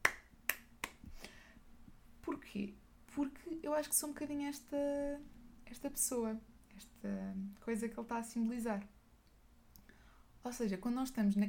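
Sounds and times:
single hand clap: 0:00.0 - 0:01.1
speech: 0:02.5 - 0:09.0, 0:10.4 - 0:11.4.

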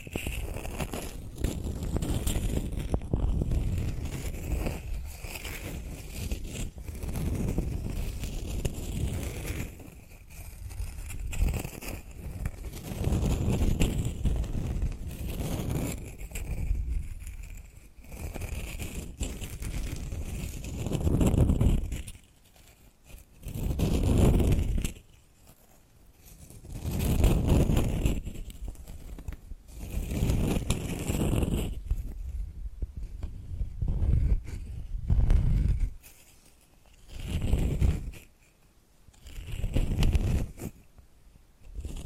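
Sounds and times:
tapping and scratching: 0:00.0 - 0:32.3, 0:32.9 - 0:40.8.

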